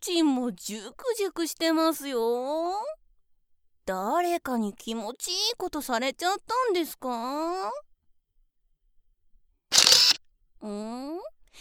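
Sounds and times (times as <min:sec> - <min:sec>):
speech: 0:00.0 - 0:03.0, 0:03.9 - 0:07.9, 0:10.6 - 0:11.6
camera shutter: 0:09.7 - 0:10.2.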